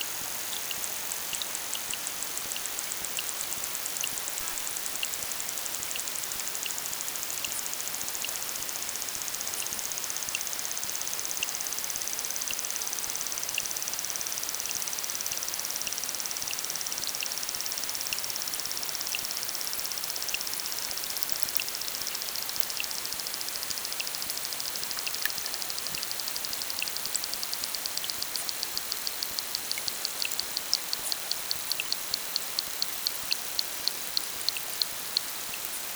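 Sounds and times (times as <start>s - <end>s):
pond ambience: 0.0s - 35.9s.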